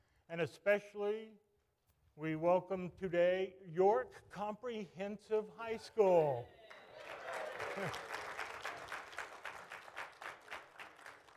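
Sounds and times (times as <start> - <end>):
speech: 0.3 - 1.4, 2.2 - 7.2, 7.8 - 8.1
audience applause: 6.6 - 11.3.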